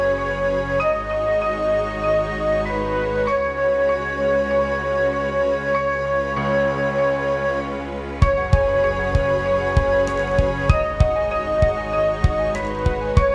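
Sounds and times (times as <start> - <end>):
RPG forest game music: 0.0 - 13.3.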